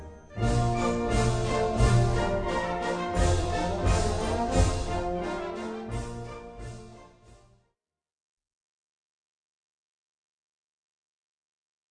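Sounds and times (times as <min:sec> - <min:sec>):
polka band playing: 0:00.4 - 0:07.2.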